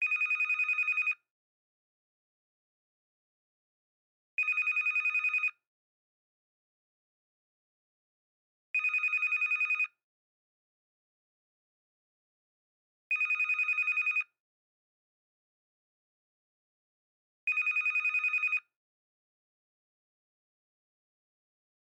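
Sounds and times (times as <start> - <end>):
hotel telephone ringing with digital high low alternation: 0.0 - 1.2, 4.4 - 5.6, 8.8 - 9.9, 13.1 - 14.3, 17.5 - 18.7.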